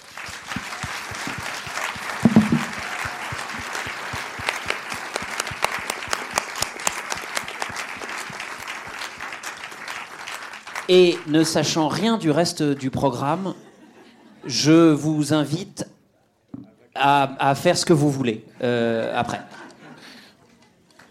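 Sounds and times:
audience applause: 0.0s - 11.3s
speech: 10.9s - 13.6s, 14.4s - 15.9s, 17.0s - 19.7s.

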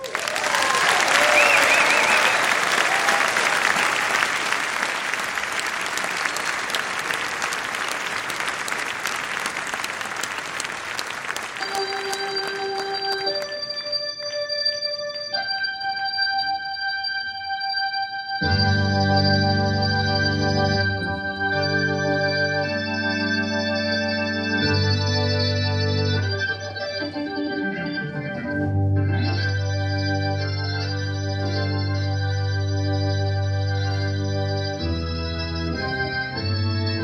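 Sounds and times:
audience applause greeting a jazz organist: 0.0s - 13.8s
sustained musical chords: 11.6s - 37.0s.

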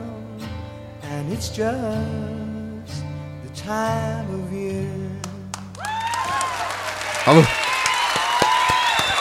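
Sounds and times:
speech: 1.3s - 3.0s, 3.7s - 5.2s, 7.3s - 7.7s
applause: 5.5s - 9.2s.

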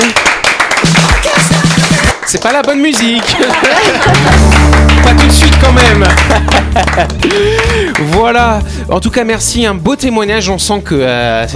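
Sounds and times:
applause for the guest: 0.0s - 8.6s
speech: 2.3s - 11.5s
laughter: 3.2s - 5.2s, 5.9s - 8.2s.

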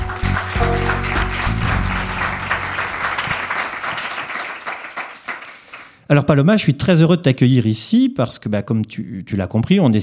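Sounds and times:
audience applause: 0.0s - 5.9s
speech: 6.1s - 10.0s.

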